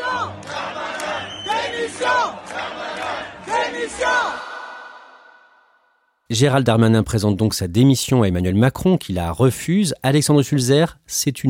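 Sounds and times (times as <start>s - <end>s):
deputies clamoring and chanting in parliament chamber: 0.0s - 4.8s
speech: 1.9s - 4.5s, 6.3s - 11.4s.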